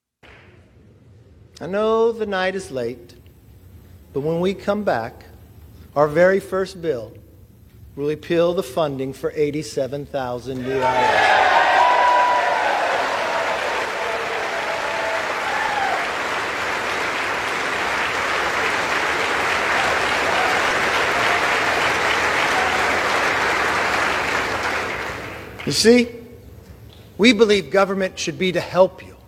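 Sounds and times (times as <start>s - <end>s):
speech: 1.6s - 3.2s, 4.2s - 5.3s, 6.0s - 7.2s, 8.0s - 11.4s, 25.7s - 26.1s, 27.2s - 29.2s
audience cheering and applauding: 10.6s - 25.6s.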